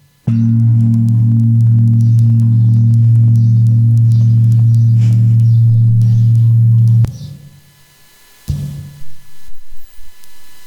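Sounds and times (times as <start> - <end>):
medium-sized gong humming: 0.0 - 7.1.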